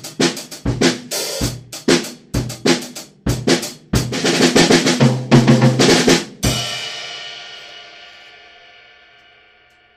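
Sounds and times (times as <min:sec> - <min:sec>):
funk music: 0:00.0 - 0:06.7.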